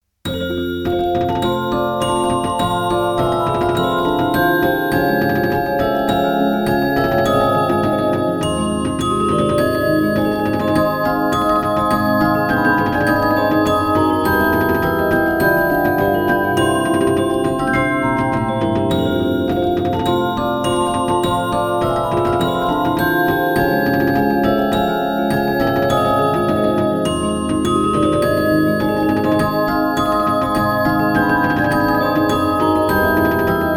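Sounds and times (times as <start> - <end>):
music boxes: 0.3 - 33.7.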